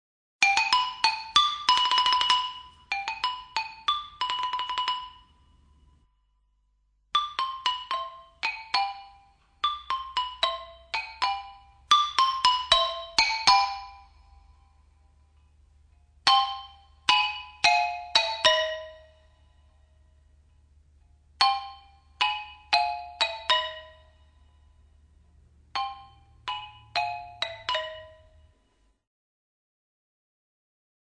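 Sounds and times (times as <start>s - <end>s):
xylophone: 0.4s - 6.1s, 7.1s - 15.4s, 16.2s - 20.3s, 21.4s - 28.9s.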